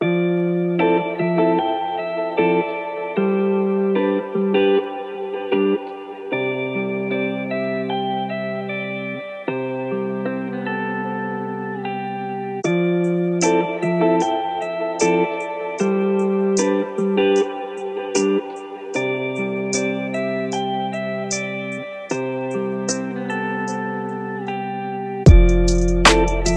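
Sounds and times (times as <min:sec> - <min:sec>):
chill music: 0:00.0 - 0:26.5.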